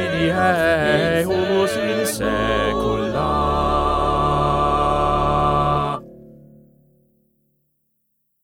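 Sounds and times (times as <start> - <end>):
bass voice singing: 0.0 - 6.0.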